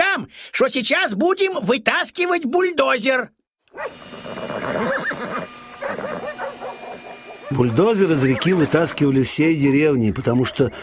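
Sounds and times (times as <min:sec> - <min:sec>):
speech: 0:00.2 - 0:05.3, 0:07.5 - 0:10.8
horses neighing and whinnying: 0:04.0 - 0:10.8.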